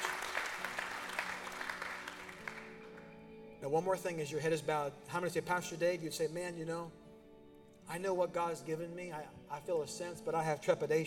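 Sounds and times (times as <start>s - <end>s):
faint clapping from a church congregation: 0.0s - 3.3s
speech: 3.6s - 7.0s, 7.9s - 11.0s.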